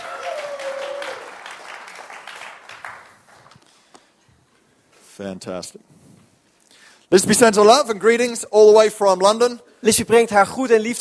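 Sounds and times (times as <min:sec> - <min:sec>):
audience applause for the band: 0:00.0 - 0:03.6
speech: 0:05.2 - 0:06.0, 0:07.1 - 0:11.0.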